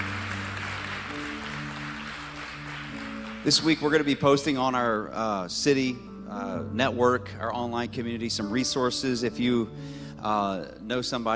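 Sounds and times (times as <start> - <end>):
audience clapping hands: 0.0 - 4.3
speech: 3.4 - 11.3.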